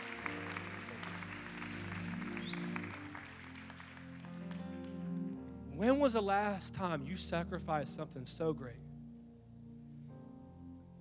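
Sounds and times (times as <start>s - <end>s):
audience applause: 0.0s - 5.3s
sustained keyboard or organ chords: 0.0s - 10.9s
speech: 5.8s - 8.8s.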